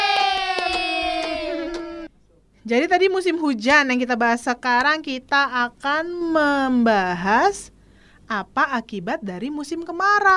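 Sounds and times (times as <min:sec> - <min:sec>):
scattered claps: 0:00.0 - 0:01.9
children cheering in a classroom: 0:00.0 - 0:02.1
speech: 0:02.6 - 0:07.7, 0:08.3 - 0:10.3.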